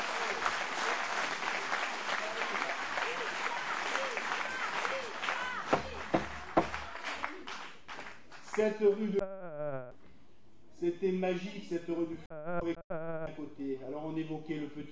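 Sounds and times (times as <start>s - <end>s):
audience applause: 0.0s - 8.6s
speech: 8.6s - 9.4s, 10.8s - 14.8s.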